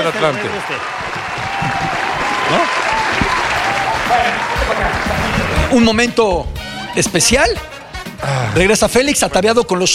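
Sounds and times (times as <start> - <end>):
speech: 0.0 - 2.8, 4.1 - 9.9
applause: 0.0 - 5.8.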